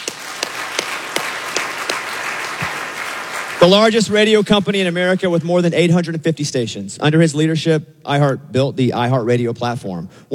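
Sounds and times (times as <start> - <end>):
audience applause: 0.0 - 4.0
speech: 3.6 - 10.3.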